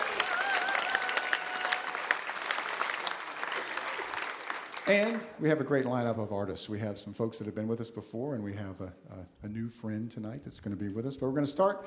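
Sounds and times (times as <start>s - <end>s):
audience applause at an evening live music show: 0.0s - 5.4s
speech: 4.9s - 11.8s.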